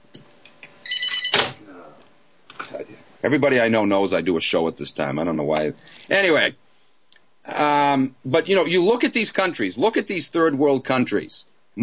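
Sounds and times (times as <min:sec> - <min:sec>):
telephone bell ringing: 0:00.8 - 0:01.5
speech: 0:02.7 - 0:06.6, 0:07.4 - 0:11.8.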